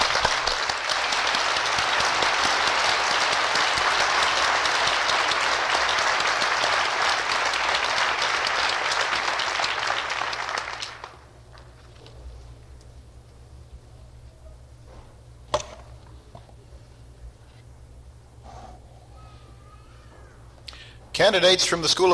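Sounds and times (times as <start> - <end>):
audience applause for graduates: 0.0 - 11.3
speech: 21.3 - 22.1.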